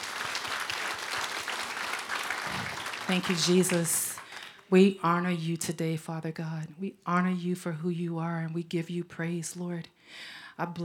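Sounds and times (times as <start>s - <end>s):
audience hand clapping: 0.0s - 4.7s
speech: 3.1s - 4.1s, 4.7s - 10.8s.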